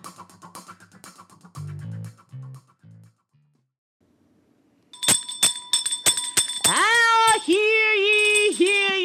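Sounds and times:
service bell rung to call for wine: 5.0s - 9.0s.

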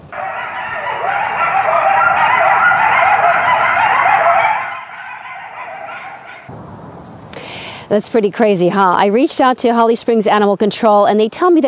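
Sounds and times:
chorus of coyotes howling and yipping: 0.0s - 6.5s
speech: 7.9s - 11.6s.

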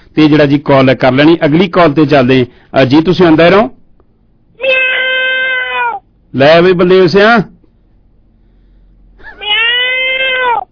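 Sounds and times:
speech: 0.2s - 3.8s, 4.6s - 4.9s, 6.3s - 7.6s
cat meowing: 4.6s - 6.1s, 9.2s - 10.7s.

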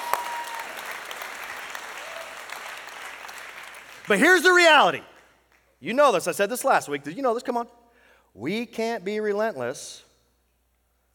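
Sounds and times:
church audience clapping: 0.0s - 5.8s
speech: 4.1s - 5.1s, 5.8s - 7.8s, 8.4s - 10.1s.

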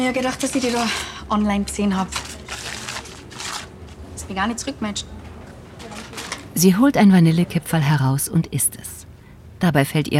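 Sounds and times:
reaching into a rustling paper bag: 0.0s - 1.0s, 1.9s - 4.0s, 5.8s - 6.7s
speech: 0.0s - 2.3s, 4.3s - 5.2s, 6.6s - 9.0s, 9.6s - 10.1s.

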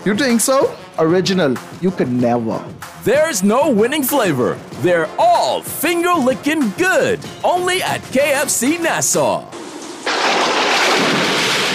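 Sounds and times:
speech: 0.0s - 9.7s
rain roaring in a thunderstorm sound effect: 9.5s - 11.7s
thunder rumbling in a thunderstorm sound effect: 10.0s - 11.7s.

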